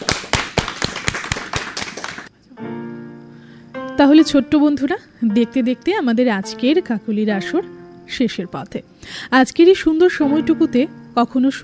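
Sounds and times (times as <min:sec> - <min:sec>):
clapping for a young performer: 0:00.0 - 0:02.3
sustained musical tone: 0:02.6 - 0:11.6
speech: 0:04.0 - 0:11.6.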